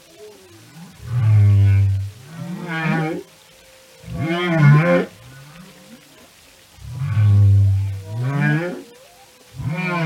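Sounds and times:
whale moaning: 0.1s - 6.1s, 6.7s - 10.0s.

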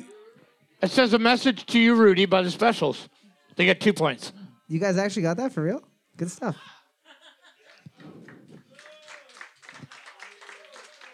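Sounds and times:
speech: 0.8s - 6.8s
laughter: 6.7s - 9.2s
audience applause: 7.7s - 11.1s.

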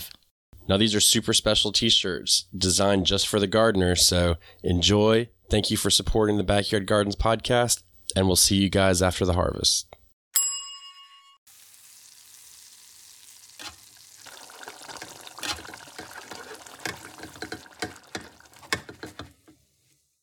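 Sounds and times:
speech: 0.7s - 9.9s
bright chime-like ding: 10.4s - 11.4s
cabbage frying and sizzling in a pan: 11.5s - 19.0s.

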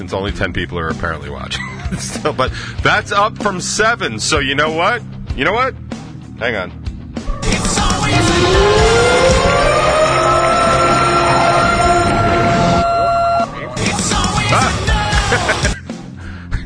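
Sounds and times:
speech: 0.0s - 6.8s, 7.4s - 9.3s
laughter: 1.5s - 2.6s, 13.5s - 16.0s
tornado siren sound effect: 7.6s - 13.9s.

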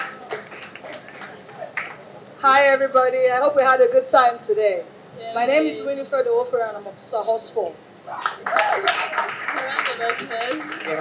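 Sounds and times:
audience applause: 0.0s - 2.0s, 8.2s - 10.9s
speech: 2.4s - 10.9s.

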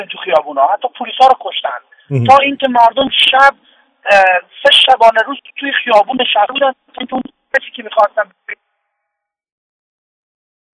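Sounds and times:
speech: 0.0s - 8.7s
garbled burst of voice on a breaking phone line: 2.1s - 2.6s.

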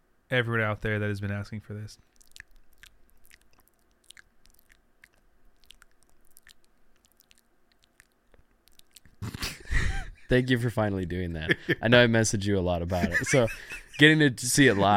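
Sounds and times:
speech: 0.3s - 2.2s, 10.3s - 14.9s
chewing while eating pho: 2.0s - 9.4s
laughter: 12.9s - 14.0s.

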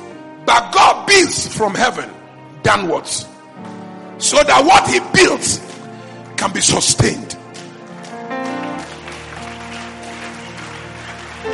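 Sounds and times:
speech: 0.5s - 5.8s, 6.4s - 7.4s
audience clapping: 5.4s - 11.5s.

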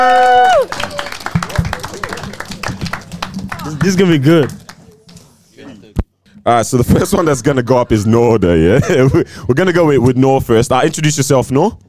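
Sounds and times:
audience round of applause: 0.0s - 4.8s
speech: 3.8s - 4.6s, 6.4s - 11.8s.

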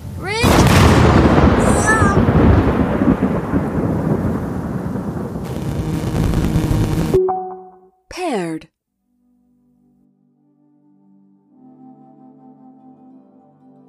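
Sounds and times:
thunder: 0.1s - 7.1s.

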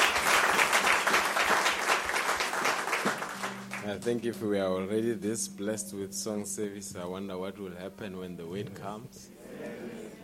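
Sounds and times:
round of applause: 0.0s - 4.2s
speech: 3.9s - 9.8s.

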